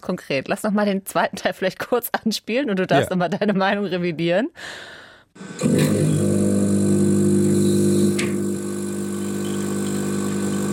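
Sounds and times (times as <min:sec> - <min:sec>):
speech: 0:00.0 - 0:06.3
coffee machine running in a lab: 0:05.4 - 0:10.7.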